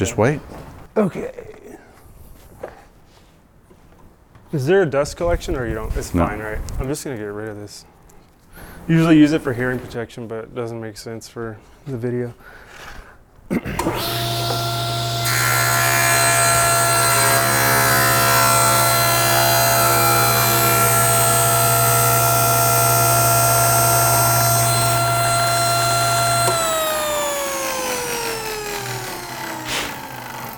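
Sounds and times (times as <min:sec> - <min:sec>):
speech: 0:00.0 - 0:01.5, 0:04.5 - 0:07.9, 0:08.6 - 0:12.9, 0:13.5 - 0:14.4
woodworking machine motor running: 0:13.8 - 0:30.5.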